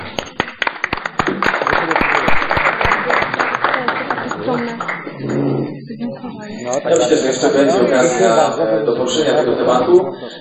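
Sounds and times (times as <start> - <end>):
audience applause: 0.0 - 5.4
speech: 6.0 - 10.3.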